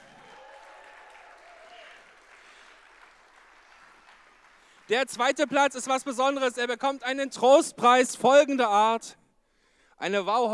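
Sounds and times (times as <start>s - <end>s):
audience applause: 0.0s - 5.8s
speech: 4.9s - 9.2s, 10.0s - 10.5s.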